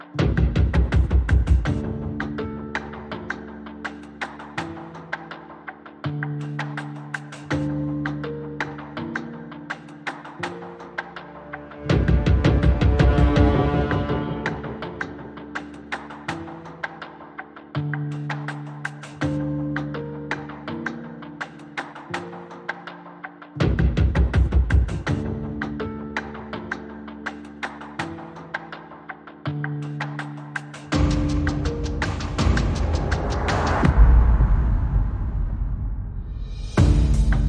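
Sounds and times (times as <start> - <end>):
drums: 0.0 - 37.4
piano: 0.0 - 37.4.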